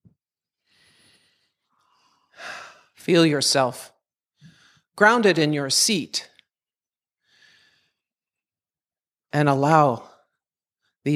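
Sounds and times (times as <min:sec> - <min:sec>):
slow deep breath during a guided grounding at a spiritual gathering: 0:00.6 - 0:03.0, 0:04.4 - 0:04.9, 0:07.2 - 0:08.1
speech: 0:03.1 - 0:03.9, 0:05.0 - 0:06.3, 0:09.3 - 0:10.1.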